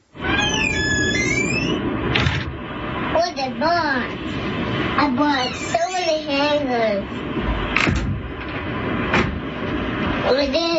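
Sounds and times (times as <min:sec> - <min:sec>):
loud noisy rumble: 0:00.0 - 0:10.7
delighted young boy squealing: 0:05.3 - 0:06.3.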